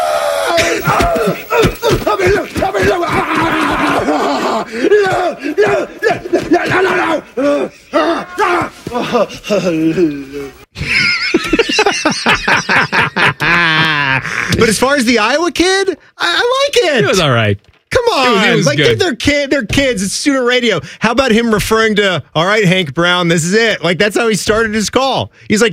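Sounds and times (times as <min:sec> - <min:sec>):
man screaming: 0:00.0 - 0:09.1
laughter: 0:00.5 - 0:14.8
speech: 0:09.1 - 0:11.0, 0:13.6 - 0:25.7.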